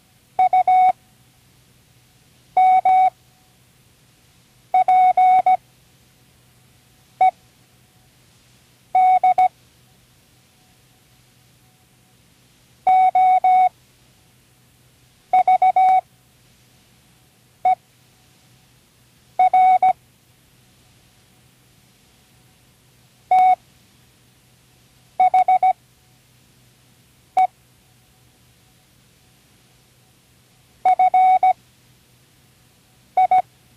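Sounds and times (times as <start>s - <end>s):
Morse code: 0.4s - 1.0s, 2.6s - 3.1s, 4.8s - 5.6s, 9.0s - 9.5s, 12.9s - 13.7s, 15.4s - 16.0s, 19.4s - 20.0s, 23.3s - 23.6s, 25.2s - 25.8s, 30.9s - 31.6s, 33.2s - 33.4s.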